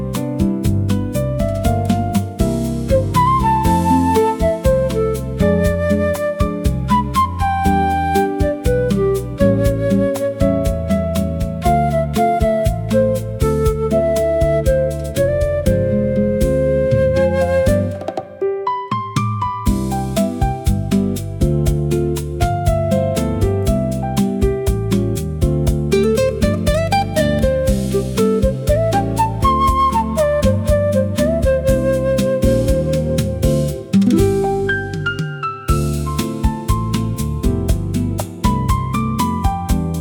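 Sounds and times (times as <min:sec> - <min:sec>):
jazz music: 0:00.0 - 0:39.9.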